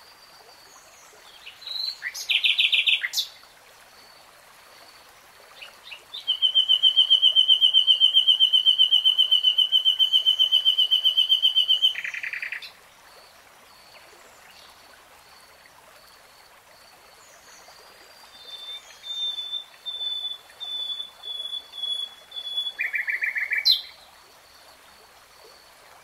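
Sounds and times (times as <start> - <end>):
nightingale song: 0.9 - 3.4, 5.6 - 12.8, 17.2 - 24.1.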